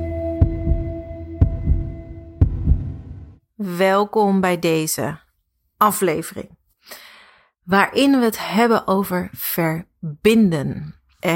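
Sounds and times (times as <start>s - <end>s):
beating heart sound effect: 0.4s - 3.4s
speech: 3.7s - 5.2s, 5.8s - 7.0s, 7.7s - 11.3s.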